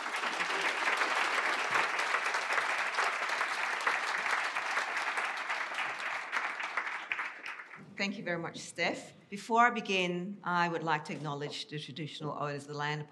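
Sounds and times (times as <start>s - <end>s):
audience applause: 0.0s - 7.8s
speech: 8.0s - 13.1s.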